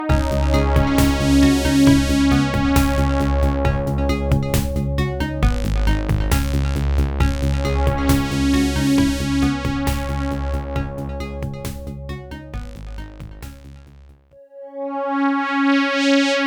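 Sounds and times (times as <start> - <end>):
Yamaha OPL FM synth tones: 0.1 - 16.3.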